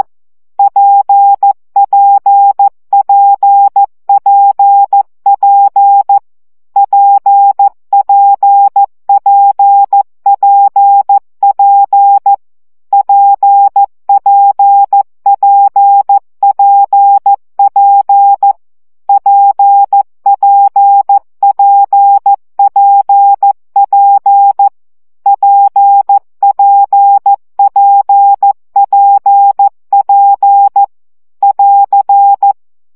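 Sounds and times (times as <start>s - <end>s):
CW morse code practice at 12 baud: 0.0s - 6.2s, 6.8s - 32.6s.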